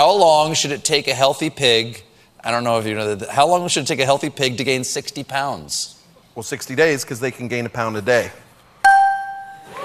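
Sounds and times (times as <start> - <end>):
speech: 0.1 - 8.4
bell being hit: 8.9 - 9.6.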